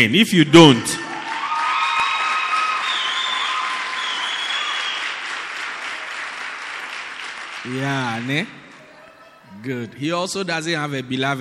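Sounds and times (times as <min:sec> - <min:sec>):
speech: 0:00.0 - 0:01.1, 0:07.6 - 0:08.6, 0:09.6 - 0:11.3
high cheers and whoops: 0:01.0 - 0:05.2
audience clapping: 0:01.0 - 0:09.1.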